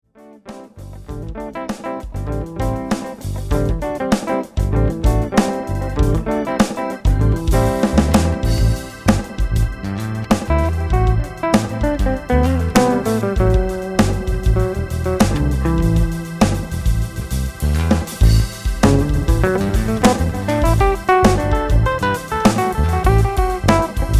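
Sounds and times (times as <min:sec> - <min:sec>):
smooth jazz: 0:00.7 - 0:24.1.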